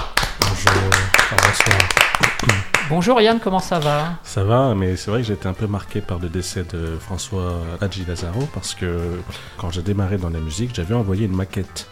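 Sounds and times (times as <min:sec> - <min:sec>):
audience applause: 0:00.0 - 0:03.0
speech: 0:02.9 - 0:11.9.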